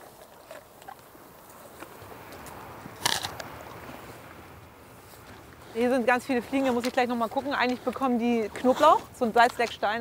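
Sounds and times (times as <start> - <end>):
German Angus cattle crunching stored apples from an orchard farm: 0.0 - 4.2, 5.0 - 10.0
speech: 5.8 - 10.0.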